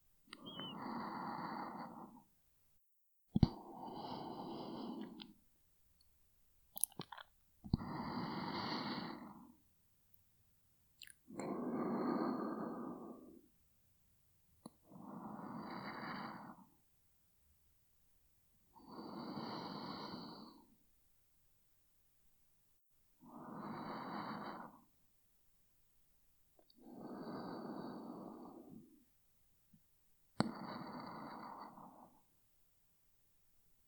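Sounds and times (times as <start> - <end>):
person breathing in sleep: 0.3 - 2.3, 3.4 - 5.4, 7.8 - 9.6, 11.3 - 13.5, 14.8 - 16.8, 18.7 - 20.8, 23.2 - 25.0, 26.8 - 29.1, 30.4 - 32.3.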